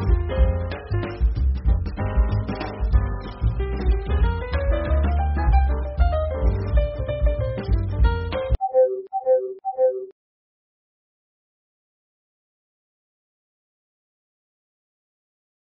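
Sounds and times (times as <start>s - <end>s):
jazz music intro: 0.0s - 8.6s.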